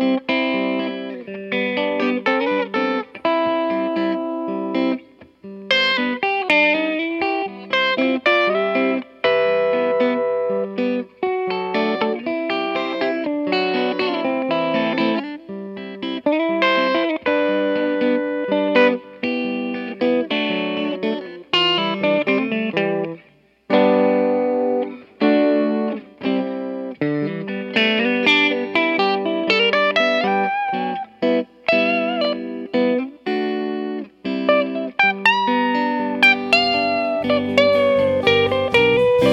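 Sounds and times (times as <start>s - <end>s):
guitar solo: 0.0s - 39.3s.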